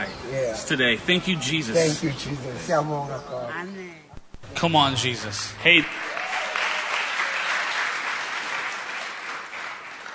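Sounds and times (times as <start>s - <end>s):
speech: 0.3s - 4.0s, 4.6s - 6.1s
audience clapping: 5.7s - 10.1s.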